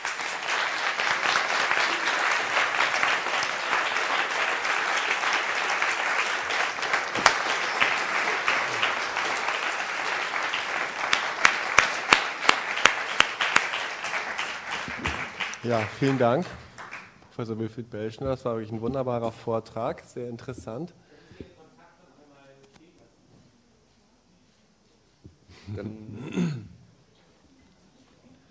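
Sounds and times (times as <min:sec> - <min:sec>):
audience applause: 0:00.0 - 0:17.2
speech: 0:15.7 - 0:16.6, 0:17.4 - 0:21.0, 0:25.8 - 0:26.0.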